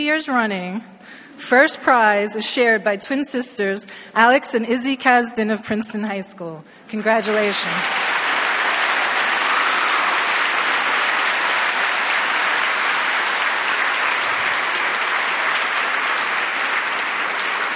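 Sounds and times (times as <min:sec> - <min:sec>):
speech: 0:00.0 - 0:08.2
large audience applause: 0:07.0 - 0:17.7.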